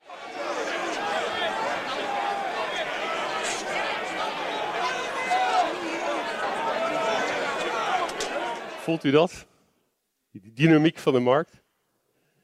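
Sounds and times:
traders shouting on stock exchange floor: 0.0s - 9.1s
speech: 8.9s - 9.5s, 10.4s - 11.6s.

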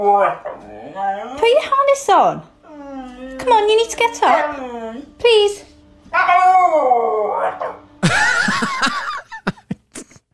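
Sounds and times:
dog whining and howling in protest: 0.0s - 1.6s, 2.5s - 5.2s, 6.1s - 8.0s
speech: 0.0s - 2.5s, 3.4s - 9.1s
laughter: 8.0s - 10.2s.

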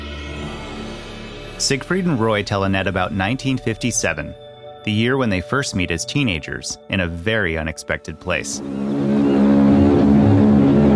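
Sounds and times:
speech: 1.6s - 9.2s
ocean liner's horn roaring as ship departs: 8.5s - 10.9s.

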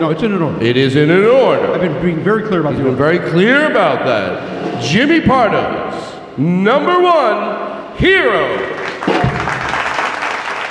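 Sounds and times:
speech: 0.0s - 9.2s
audience applause: 8.7s - 10.7s.

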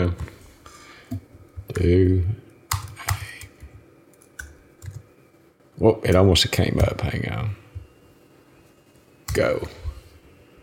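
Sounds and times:
speech: 1.8s - 2.3s, 5.8s - 7.6s, 9.4s - 9.8s
typing a Google search on a computer keyboard: 2.7s - 5.1s.

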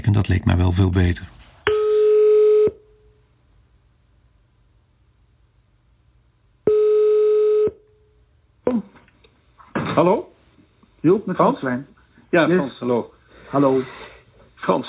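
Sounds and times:
faint hum: 0.0s - 14.8s
speech: 0.1s - 1.4s, 10.0s - 10.2s, 11.0s - 14.0s, 14.6s - 14.8s
telephone ringing tone: 1.7s - 2.8s, 6.7s - 7.8s.

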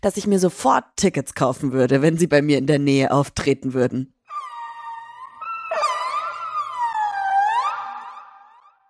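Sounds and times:
speech: 0.0s - 4.2s
humpback whale song: 4.3s - 8.8s.

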